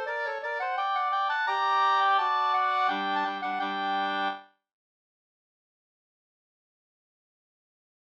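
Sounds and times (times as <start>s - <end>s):
wedding march music: 0.6s - 4.4s.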